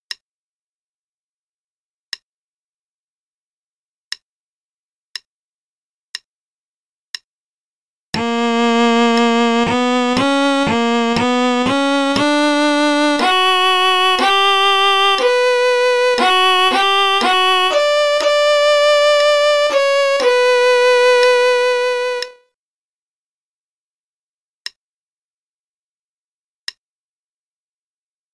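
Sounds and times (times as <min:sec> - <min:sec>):
play-along concerto in B minor at 60 bpm: 0:08.2 - 0:22.4.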